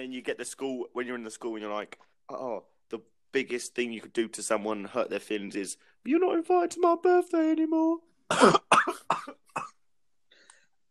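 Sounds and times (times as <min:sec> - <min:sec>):
speech: 0:00.0 - 0:09.4
person coughing after swallowing something the wrong way: 0:08.3 - 0:09.8.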